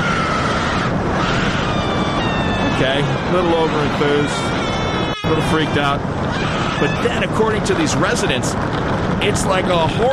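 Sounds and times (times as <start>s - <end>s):
roller coaster running along its track: 0.0s - 10.1s
speech: 2.8s - 4.5s, 5.3s - 10.1s.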